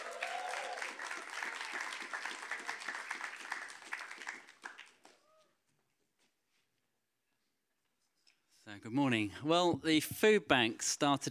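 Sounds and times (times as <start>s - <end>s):
crowd applauding: 0.0s - 5.3s
speech: 8.8s - 11.2s.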